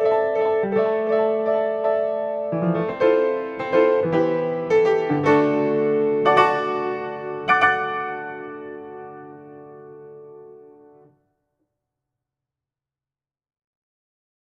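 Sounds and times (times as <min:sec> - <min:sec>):
solo piano: 0:00.0 - 0:11.1.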